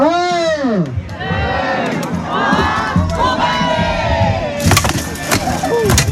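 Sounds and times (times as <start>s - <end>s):
crowd cheering at armored combat: 0.8s - 6.1s
wooden cracks: 4.6s - 6.1s.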